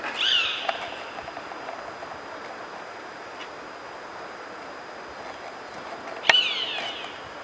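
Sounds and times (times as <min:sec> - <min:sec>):
bird giving a short high whistled call: 0:00.1 - 0:01.2, 0:06.2 - 0:07.3.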